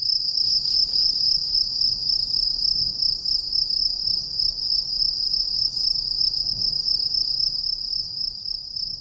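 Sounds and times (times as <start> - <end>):
crickets chirping: 0.0 - 8.9.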